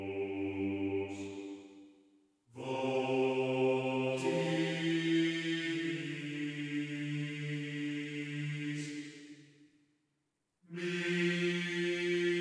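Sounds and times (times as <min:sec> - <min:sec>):
church male choir singing in game audio: 0:00.0 - 0:01.6, 0:02.6 - 0:09.1, 0:10.7 - 0:12.3.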